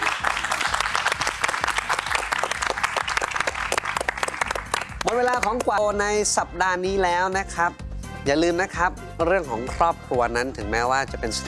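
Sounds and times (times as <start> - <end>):
audience applause: 0.0 - 5.6
speech: 5.3 - 11.4.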